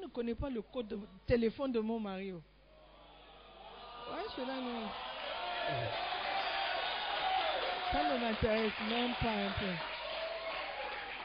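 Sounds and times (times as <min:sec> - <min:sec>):
speech: 0:00.1 - 0:02.5, 0:04.1 - 0:06.1, 0:07.9 - 0:09.9
audience cheering and calling out together: 0:03.1 - 0:11.2.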